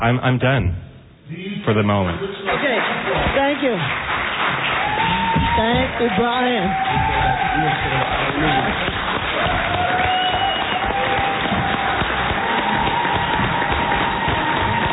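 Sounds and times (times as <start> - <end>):
speech: 0.0 - 2.3, 5.6 - 9.6
audience applause at the gymnasium: 2.4 - 14.9.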